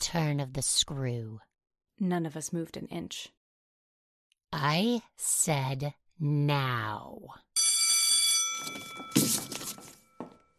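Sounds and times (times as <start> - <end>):
speech: 0.1 - 3.4, 4.5 - 7.4, 8.6 - 9.5
school bell ringing: 7.6 - 10.5
rustling and shuffling noise: 8.6 - 10.4.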